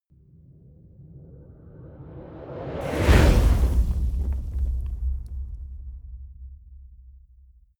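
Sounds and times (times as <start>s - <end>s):
fire torch whoosh hit: 2.8s - 6.2s.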